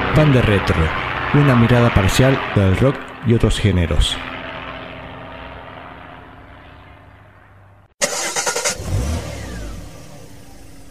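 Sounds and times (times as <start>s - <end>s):
speech: 0.2s - 4.3s
car engine cranking, starting and revving: 8.0s - 10.8s.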